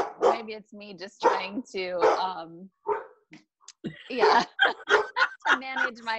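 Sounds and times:
dog barking: 0.0 - 0.5, 1.2 - 3.2, 4.2 - 5.3
speech: 0.5 - 4.9, 5.5 - 6.1
laughter: 3.9 - 6.1.

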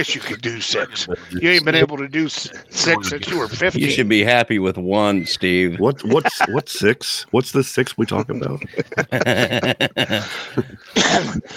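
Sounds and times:
speech: 0.0 - 11.5
laughter: 5.2 - 7.0, 7.8 - 11.5
person coughing into the microphone: 10.1 - 11.5.

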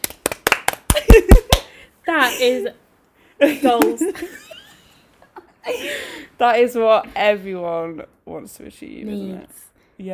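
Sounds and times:
applause: 0.0 - 1.7
speech: 2.1 - 2.8, 3.4 - 4.6, 5.6 - 10.1.

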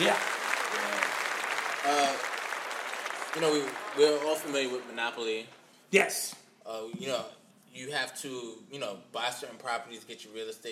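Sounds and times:
group clapping: 0.0 - 5.7
speech: 3.4 - 10.6.

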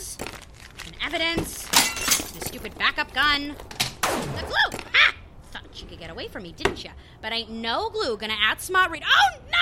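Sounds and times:
statue breaking: 0.2 - 1.0
speech: 1.1 - 1.6, 2.6 - 4.9, 5.8 - 9.4
crunching clinking statue debris: 1.6 - 2.7.

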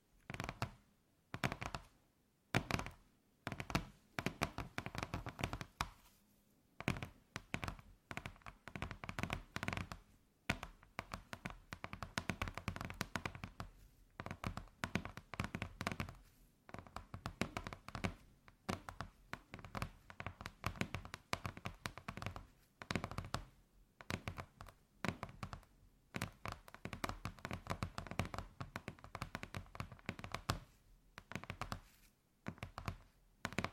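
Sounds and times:
ASMR fingertip taps and knocks: 0.2 - 6.1, 6.8 - 33.7.

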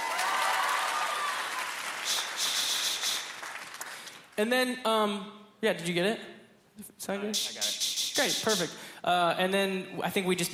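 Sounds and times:
audience clapping: 0.0 - 4.4
speech: 4.4 - 10.5.

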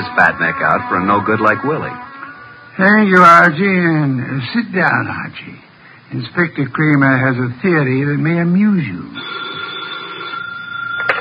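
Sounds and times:
speech: 0.0 - 2.1, 2.8 - 9.4
telephone ringing with electric bell: 9.2 - 11.2.

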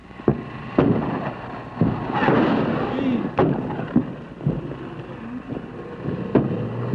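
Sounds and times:
artillery shelling of a military base: 0.2 - 6.9
rumbling roar: 0.5 - 6.9.

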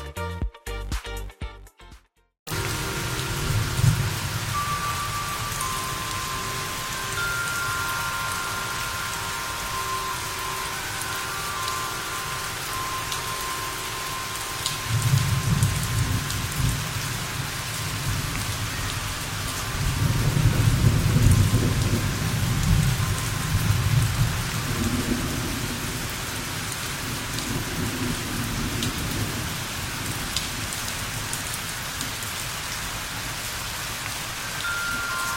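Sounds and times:
faint wind chime tones: 2.5 - 26.0, 34.4 - 35.3
steady dense rain: 2.5 - 35.3.

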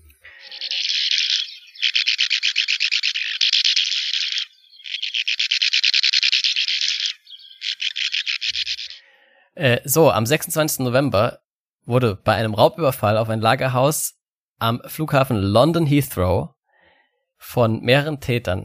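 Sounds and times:
sand martin calling: 0.0 - 9.2
speech: 9.6 - 16.6, 17.5 - 18.6.

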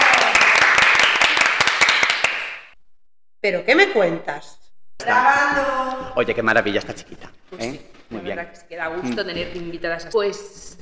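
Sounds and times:
audience applause: 0.0 - 2.7
speech: 3.4 - 10.8.

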